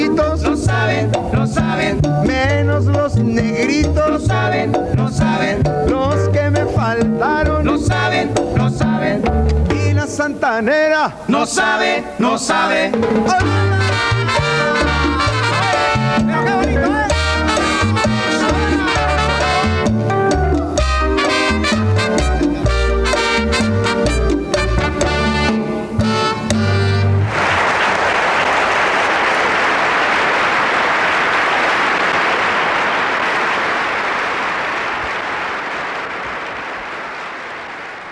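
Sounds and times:
live band song recording: 0.0s - 10.2s, 12.8s - 27.5s
speech: 10.2s - 14.9s
applause: 27.2s - 38.0s.

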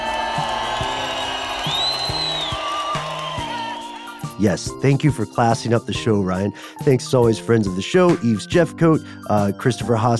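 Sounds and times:
wild applause sound effect cue: 0.0s - 4.4s
speech: 4.4s - 10.1s.

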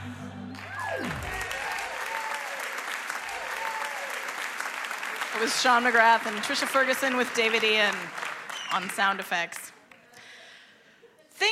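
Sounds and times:
audience whooping: 0.0s - 5.2s
audience applause: 0.0s - 9.9s
speech: 5.4s - 9.7s.

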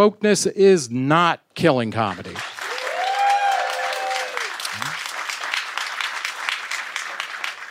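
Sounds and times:
speech: 0.0s - 2.5s
audience clapping: 2.0s - 7.7s
person cheering: 2.7s - 5.0s.

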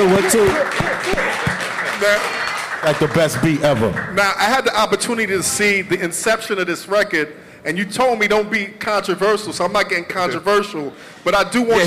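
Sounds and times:
audience round of applause: 0.0s - 4.3s
speech: 0.0s - 11.8s.

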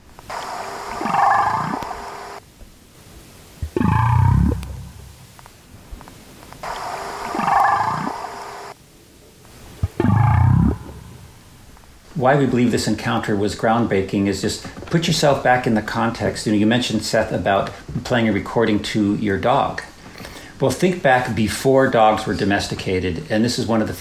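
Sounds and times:
whale long tonal moaning calls: 3.7s - 5.2s, 7.3s - 8.2s, 9.8s - 11.4s
speech: 12.2s - 19.9s, 20.6s - 24.0s.

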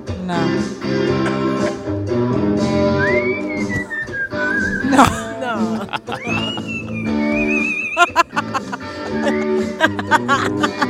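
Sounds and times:
guitar: 0.0s - 10.8s
speech: 0.3s - 1.3s
parrot whistling along to music: 2.9s - 4.9s, 6.2s - 8.1s
laughter: 4.7s - 10.8s.

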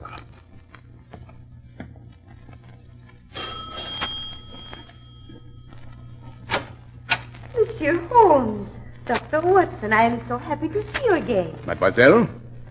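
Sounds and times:
soft footsteps: 0.5s - 11.4s
doorbell chiming: 3.4s - 5.8s
speech: 7.8s - 12.4s.

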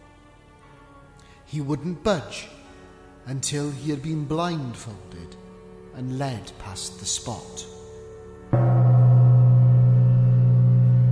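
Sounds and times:
speech: 1.5s - 2.6s, 3.2s - 5.4s, 6.0s - 7.8s
gong strike: 8.5s - 11.1s.

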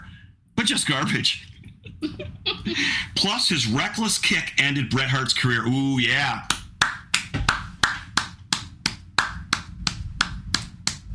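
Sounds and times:
speech: 0.6s - 6.6s
slow clap: 6.5s - 11.1s.

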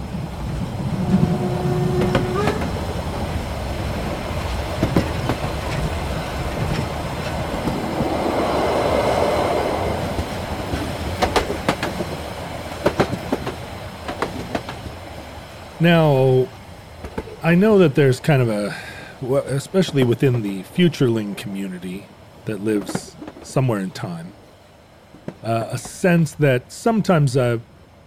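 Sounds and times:
freight train rolling on rails: 0.0s - 28.0s
freight train wheels clickety-clack: 0.2s - 8.3s, 10.1s - 15.0s, 17.0s - 17.4s, 22.5s - 23.6s
speech: 15.8s - 16.5s, 17.4s - 24.4s, 25.3s - 27.7s.

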